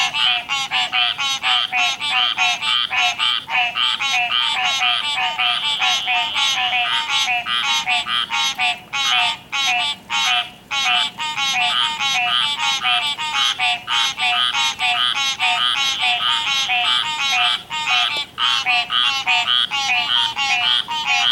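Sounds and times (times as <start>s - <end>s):
frog croaking: 0.0s - 21.3s.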